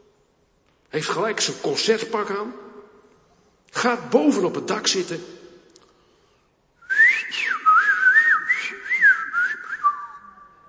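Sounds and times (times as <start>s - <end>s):
speech: 0.9s - 2.6s, 3.8s - 5.4s
person whistling an imitation of blackbird song: 6.9s - 10.6s.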